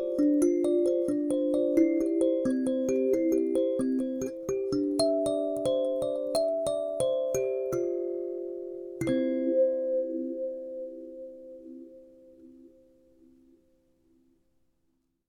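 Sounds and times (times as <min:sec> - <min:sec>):
kalimba playing in C major: 0:00.0 - 0:09.8.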